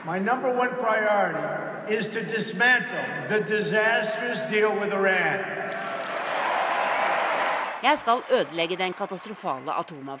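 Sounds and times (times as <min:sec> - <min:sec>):
speech: 0:00.0 - 0:05.9, 0:07.8 - 0:10.1
large crowd clapping and cheering: 0:05.6 - 0:10.1.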